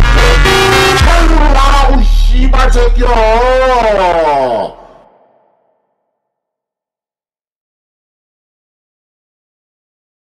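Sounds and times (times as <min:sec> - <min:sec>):
Korean funk music: 0:00.0 - 0:04.8.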